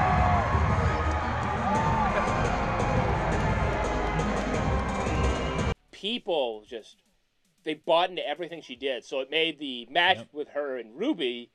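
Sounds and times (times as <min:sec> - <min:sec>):
large crowd cheering: 0:00.0 - 0:05.8
speech: 0:06.0 - 0:11.5.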